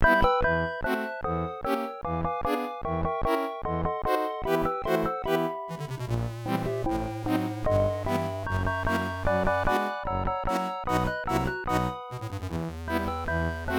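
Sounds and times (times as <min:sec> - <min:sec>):
orchestrion music on 8580 SID chip: 0:00.1 - 0:13.7.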